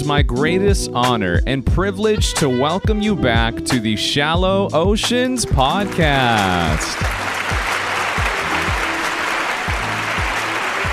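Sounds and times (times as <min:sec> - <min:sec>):
speech: 0:00.0 - 0:07.8
applause: 0:05.8 - 0:10.9.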